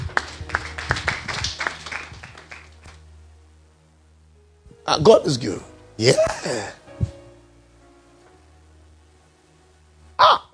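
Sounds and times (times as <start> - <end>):
audience clapping hands: 0.0 - 3.1
speech: 4.9 - 6.8.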